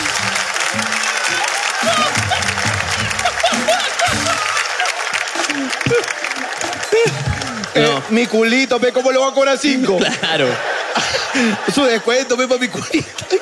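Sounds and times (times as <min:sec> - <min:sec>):
audience applause: 0:00.0 - 0:08.6
laughter: 0:00.0 - 0:13.4
speech: 0:07.8 - 0:13.4.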